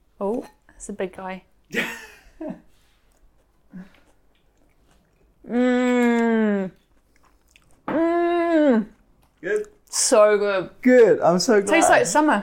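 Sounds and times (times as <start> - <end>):
speech: 0.2 - 2.6, 10.1 - 12.4
person chewing summer salad with peach, potato and watercress: 2.8 - 7.9, 8.7 - 10.0.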